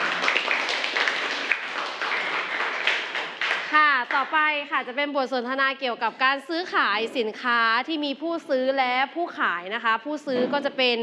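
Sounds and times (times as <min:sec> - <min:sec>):
classroom applause for presenters: 0:00.0 - 0:04.4
speech: 0:04.6 - 0:11.0.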